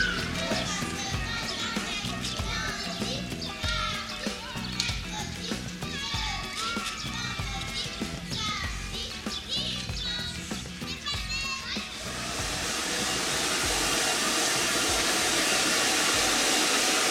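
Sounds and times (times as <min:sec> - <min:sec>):
children chattering at play in pedestrian street: 0:00.0 - 0:12.3
steady outdoor murmur: 0:00.0 - 0:17.0.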